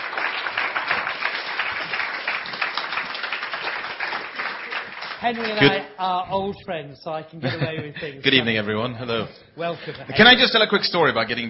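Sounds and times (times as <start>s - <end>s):
audience applauding a guest: 0.0s - 5.9s
speech: 5.2s - 11.4s.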